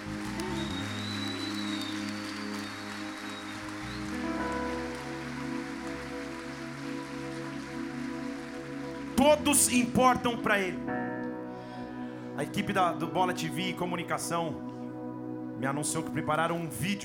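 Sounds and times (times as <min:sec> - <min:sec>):
church audience clapping: 0:00.0 - 0:10.4
keyboard chords: 0:00.0 - 0:17.0
speech: 0:09.2 - 0:11.0, 0:12.4 - 0:14.7, 0:15.6 - 0:17.0.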